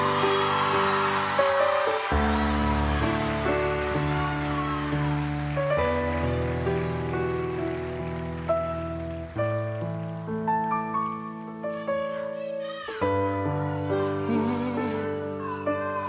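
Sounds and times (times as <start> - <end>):
audience applause: 0.0 - 11.6
sustained piano chords: 0.0 - 16.0.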